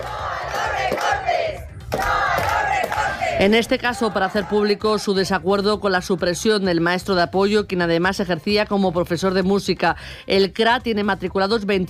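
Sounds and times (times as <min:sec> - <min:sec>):
protest crowd chanting outside the Carucedo rural grouped school: 0:00.0 - 0:05.4
speech: 0:03.4 - 0:11.8.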